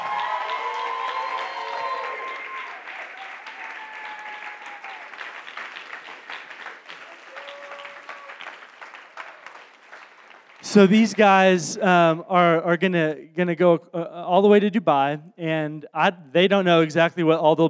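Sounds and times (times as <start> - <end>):
audience applause and cheering: 0.0 - 11.6
speech: 10.7 - 17.6.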